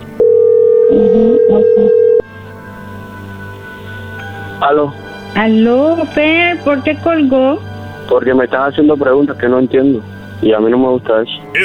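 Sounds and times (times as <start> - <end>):
telephone signal for an incoming call: 0.2 - 2.3
speech: 0.9 - 2.1, 4.6 - 11.6.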